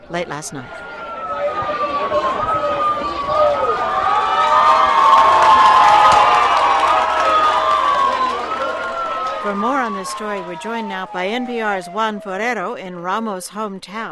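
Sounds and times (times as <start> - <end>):
speech: 0.1 - 2.3, 9.5 - 14.1
crowd cheering and shouting at the Valencia, Venezuela home of Wilson Ramos: 0.6 - 11.2.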